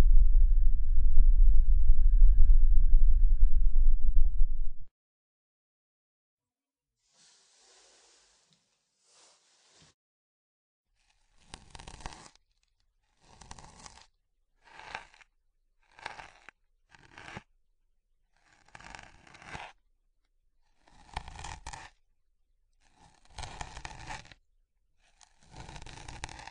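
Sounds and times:
deep dense rumbling of hair massage: 0:00.0 - 0:04.9.

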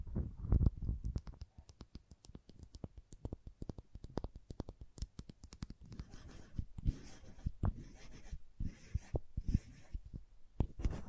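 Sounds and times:
crayons tapping: 0:01.0 - 0:06.2
crayon drawing: 0:01.2 - 0:11.0
crayons carving and cutting: 0:01.3 - 0:10.0.

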